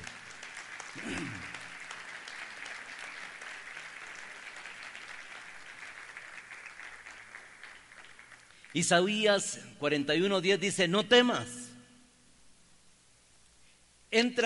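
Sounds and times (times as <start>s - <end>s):
audience applauding: 0.0s - 8.9s
speech: 8.7s - 11.6s, 14.2s - 14.4s.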